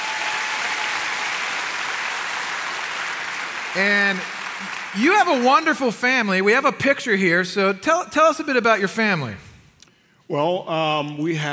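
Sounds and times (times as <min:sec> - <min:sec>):
audience applause greeting a guest's wife: 0:00.0 - 0:06.5
speech: 0:03.7 - 0:09.5, 0:10.3 - 0:11.5.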